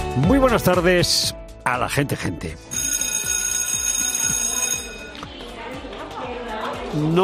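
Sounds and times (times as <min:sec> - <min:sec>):
speech: 0:00.2 - 0:02.7, 0:07.0 - 0:07.2
school bell ringing: 0:02.7 - 0:05.4.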